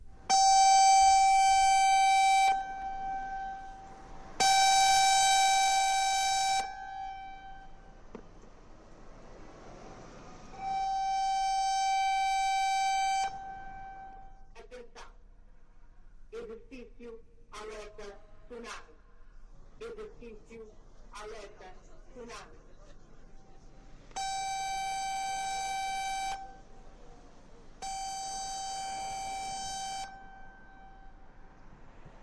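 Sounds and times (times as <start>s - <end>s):
tsunami warning alert siren: 0.0s - 8.0s, 10.4s - 14.4s, 24.2s - 26.7s, 27.8s - 31.3s.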